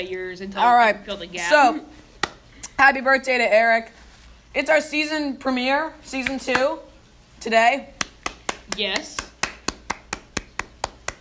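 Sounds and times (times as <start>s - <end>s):
speech: 0.0s - 2.0s, 2.8s - 8.0s, 8.7s - 9.2s
awkward clapping: 2.2s - 2.4s, 6.2s - 6.8s, 8.0s - 11.1s.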